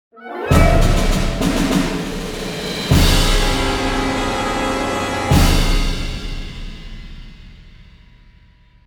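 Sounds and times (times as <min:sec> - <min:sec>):
long battle music stinger: 0:00.5 - 0:07.8.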